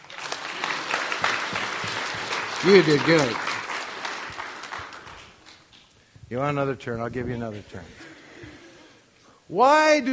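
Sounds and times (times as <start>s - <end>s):
audience applause: 0.0s - 5.8s
speech: 2.6s - 3.4s, 6.3s - 8.0s, 9.5s - 10.1s.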